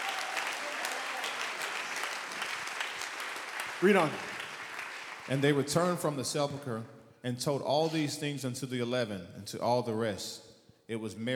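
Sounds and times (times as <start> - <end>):
audience applause: 0.0 - 5.7
speech: 3.8 - 4.3, 5.3 - 11.3.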